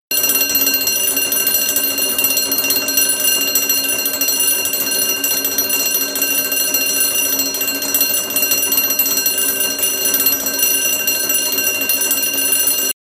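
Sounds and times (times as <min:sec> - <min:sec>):
alarm: 0:00.1 - 0:13.0.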